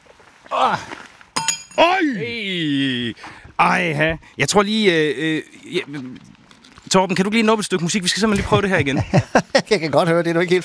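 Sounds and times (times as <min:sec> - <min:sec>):
long drawn-out vocal exclamation: 0:00.5 - 0:00.9, 0:01.8 - 0:03.1
speech: 0:00.5 - 0:01.0, 0:01.8 - 0:06.3, 0:06.9 - 0:10.6
thrown horseshoe clinking on landing: 0:01.4 - 0:02.1
laughter: 0:08.1 - 0:10.0.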